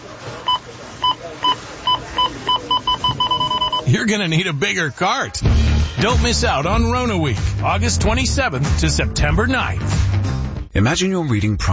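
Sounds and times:
store checkout scanner beeping: 0.3s - 4.3s
speech: 4.0s - 10.2s, 10.8s - 11.7s.

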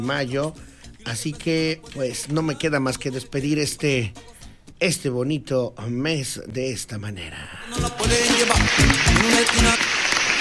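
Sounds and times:
speech: 0.0s - 10.0s
applause: 8.0s - 10.3s.

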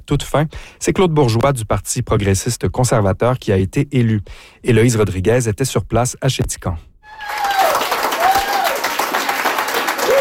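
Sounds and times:
speech: 0.1s - 7.6s
thunderous applause from election night crowd: 7.1s - 10.1s.

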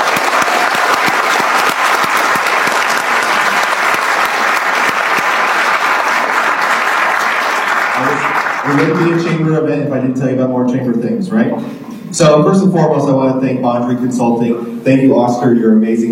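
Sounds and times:
audience round of applause: 0.0s - 9.4s
speech: 8.7s - 16.1s.

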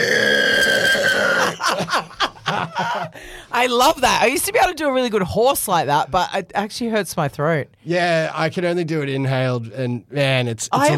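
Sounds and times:
person imitating pig squeal and grunts: 0.0s - 1.6s
laughter: 1.4s - 3.3s
speech: 3.6s - 10.9s.

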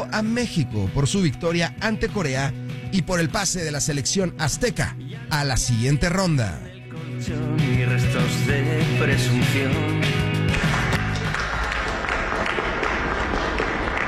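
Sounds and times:
speech: 0.1s - 10.1s
applause: 10.3s - 14.0s.

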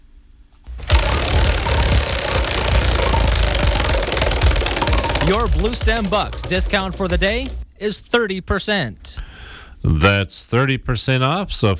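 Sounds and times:
prize wheel spinning and clicking: 0.7s - 7.6s
speech: 5.3s - 11.7s.

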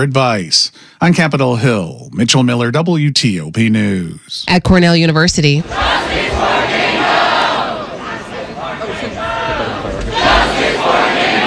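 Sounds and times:
speech: 0.0s - 6.7s
crowd of protesters shouting and chanting: 5.6s - 11.4s.

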